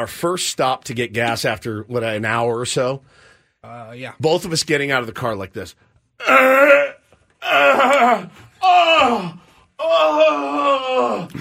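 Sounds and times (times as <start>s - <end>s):
speech: 0.0s - 6.9s, 7.5s - 8.4s
man imitating groans of pain: 6.2s - 11.3s.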